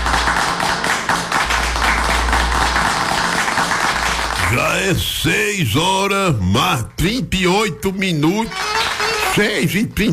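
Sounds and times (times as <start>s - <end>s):
crowd applause sound effect: 0.0s - 5.1s, 8.5s - 9.5s
speech: 4.5s - 8.7s, 9.3s - 10.1s.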